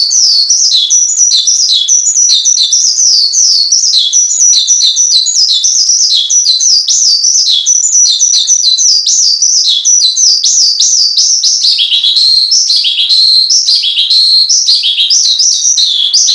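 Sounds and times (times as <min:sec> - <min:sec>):
Javan bush lark singing: 0:00.0 - 0:16.3.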